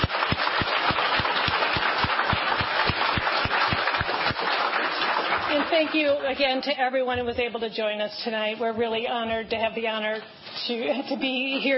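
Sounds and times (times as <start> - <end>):
crowd applauding: 0.0 - 6.4
speech: 5.8 - 11.7.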